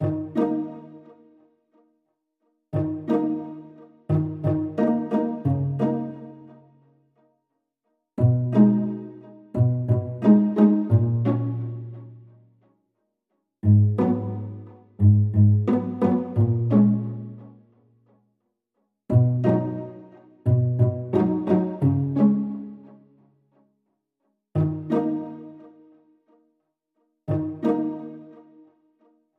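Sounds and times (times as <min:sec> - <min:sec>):
background strings: 0:00.0 - 0:01.4, 0:02.8 - 0:06.8, 0:08.2 - 0:12.6, 0:13.6 - 0:17.8, 0:19.1 - 0:23.2, 0:24.6 - 0:25.8, 0:27.3 - 0:28.6.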